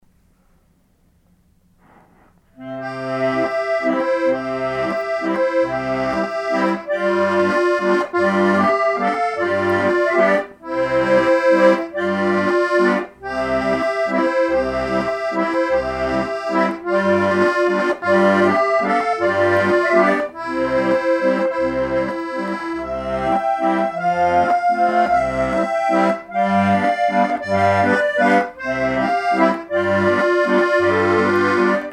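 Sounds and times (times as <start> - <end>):
pletvals waltz tune: 2.6 - 31.9.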